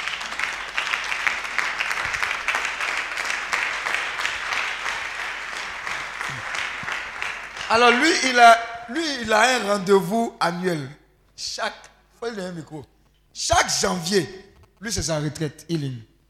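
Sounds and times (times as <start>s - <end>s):
congregation applause at a French-language church service: 0.0s - 8.9s
speech: 7.7s - 16.1s.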